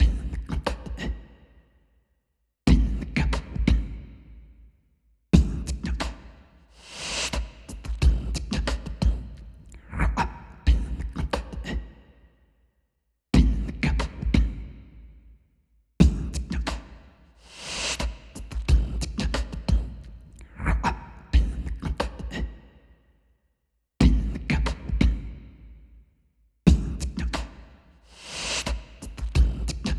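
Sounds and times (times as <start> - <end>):
beatbox: 0.0 - 1.4, 2.7 - 4.0, 5.4 - 12.0, 13.4 - 14.7, 16.0 - 22.7, 24.0 - 25.4, 26.7 - 29.9.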